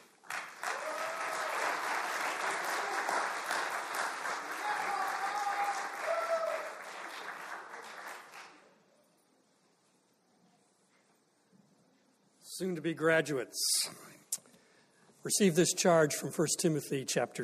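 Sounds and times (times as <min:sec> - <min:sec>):
crowd applauding: 0:00.0 - 0:08.8
scattered cheers and whoops: 0:00.6 - 0:03.4, 0:04.4 - 0:06.9
speech: 0:12.6 - 0:14.1, 0:15.2 - 0:17.4.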